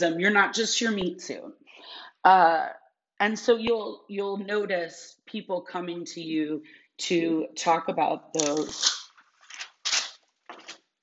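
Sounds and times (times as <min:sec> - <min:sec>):
speech: 0:00.0 - 0:09.0
paper page turning: 0:08.4 - 0:10.9.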